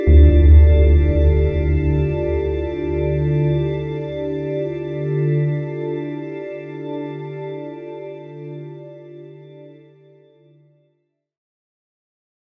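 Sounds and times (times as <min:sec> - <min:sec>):
majestic music: 0:00.1 - 0:08.1.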